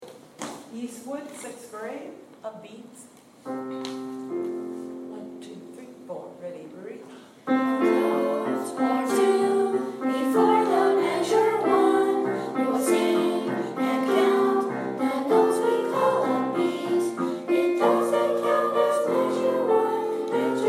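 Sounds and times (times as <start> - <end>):
musical upbeats: 7.6 - 20.6.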